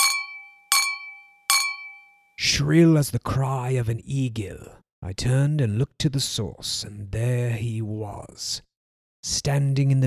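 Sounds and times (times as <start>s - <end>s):
knife tapping a champagne glass: 0.0s - 2.2s
speech: 2.4s - 10.0s.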